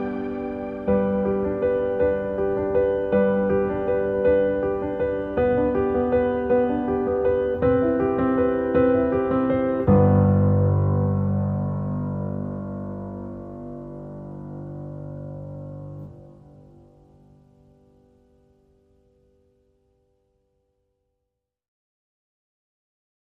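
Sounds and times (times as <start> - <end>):
solo piano piece: 0.0 - 20.3.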